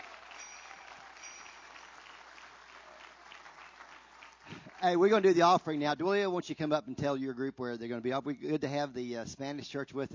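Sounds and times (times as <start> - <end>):
audience clapping: 0.0 - 6.1
speech: 4.8 - 10.1.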